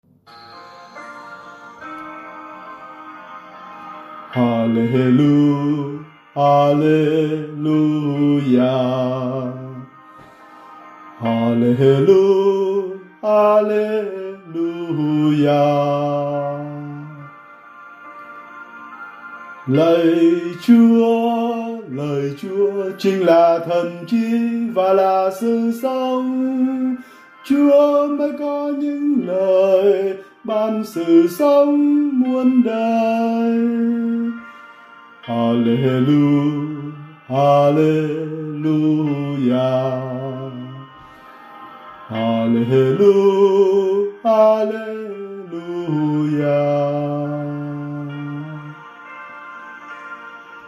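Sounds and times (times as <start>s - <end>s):
song: 0.0s - 50.6s.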